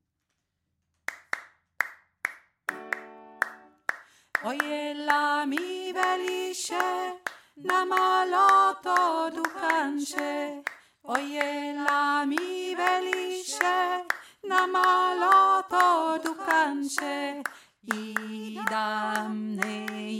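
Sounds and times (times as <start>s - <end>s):
middle voice singing: 4.4s - 20.1s.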